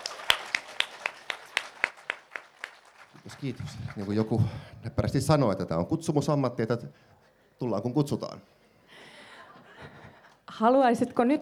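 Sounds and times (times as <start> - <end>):
audience applause: 0.0 - 4.6
speech: 3.3 - 8.6, 10.6 - 11.4.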